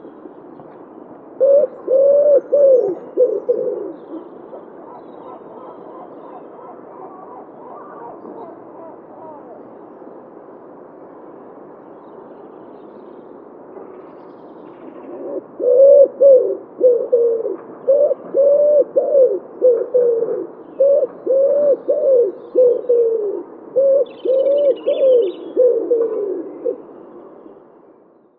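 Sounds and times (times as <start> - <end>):
wood pigeon calling: 1.4 - 9.6, 14.8 - 26.9.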